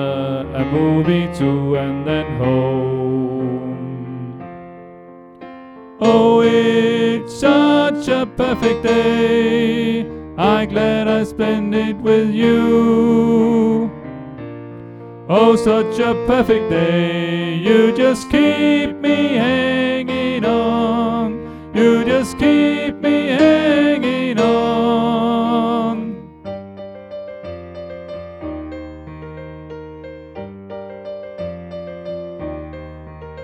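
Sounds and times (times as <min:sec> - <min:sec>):
tenor singing: 0:00.0 - 0:04.5, 0:06.0 - 0:14.3, 0:15.2 - 0:26.5.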